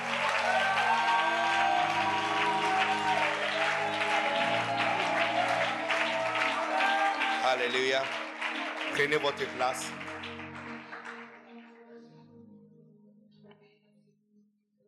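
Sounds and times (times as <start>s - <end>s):
audience cheering and applause: 0.0s - 11.2s
music humming: 0.0s - 13.8s
speech: 7.6s - 8.2s, 9.0s - 10.1s.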